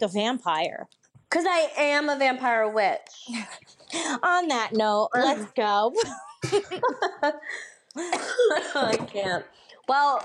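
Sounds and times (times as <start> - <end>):
speech: 0.0 - 10.2
person coughing: 6.0 - 6.8, 8.0 - 9.2.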